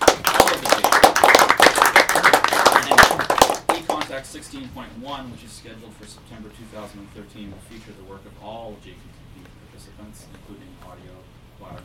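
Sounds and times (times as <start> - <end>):
round of applause: 0.0 - 4.2
speech: 4.2 - 9.2, 9.8 - 11.8.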